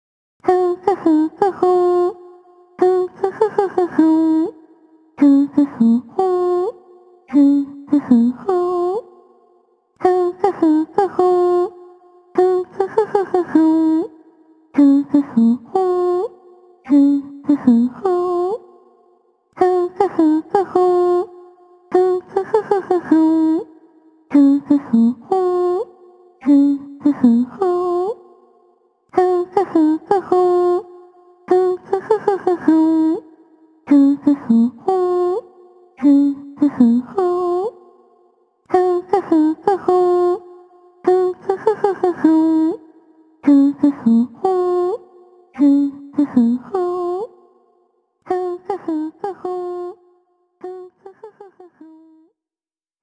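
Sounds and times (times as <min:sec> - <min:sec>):
voice: 0:00.4 - 0:02.2, 0:02.8 - 0:04.6, 0:05.2 - 0:09.1, 0:10.0 - 0:11.7, 0:12.4 - 0:14.2, 0:14.8 - 0:16.3, 0:16.9 - 0:18.7, 0:19.6 - 0:23.7, 0:24.3 - 0:28.2, 0:29.2 - 0:30.9, 0:31.5 - 0:33.3, 0:33.9 - 0:35.4, 0:36.0 - 0:37.8, 0:38.7 - 0:40.5, 0:41.1 - 0:45.0, 0:45.6 - 0:47.3, 0:48.3 - 0:50.0, 0:50.6 - 0:52.2.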